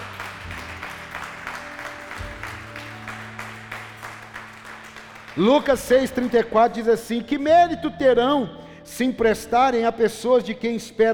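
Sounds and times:
audience applause: 0:00.0 - 0:06.5
speech: 0:05.4 - 0:11.1.

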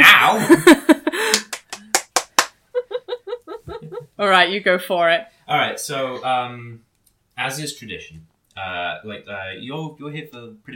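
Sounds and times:
laughter: 0:00.3 - 0:01.5, 0:02.8 - 0:04.2
hand clapping: 0:01.2 - 0:02.6
speech: 0:04.2 - 0:06.8, 0:07.4 - 0:10.7.

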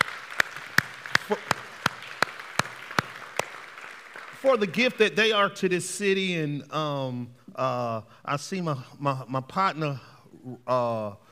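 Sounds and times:
audience round of applause: 0:00.0 - 0:05.0
speech: 0:04.4 - 0:11.3.

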